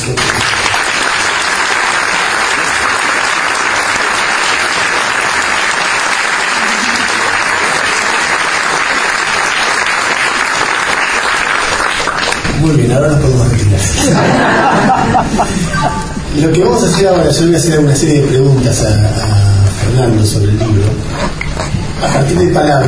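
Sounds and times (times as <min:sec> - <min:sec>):
audience applause: 0:00.0 - 0:12.9
speech: 0:12.7 - 0:19.3, 0:20.0 - 0:21.3, 0:22.0 - 0:22.8
laughter: 0:13.8 - 0:16.3.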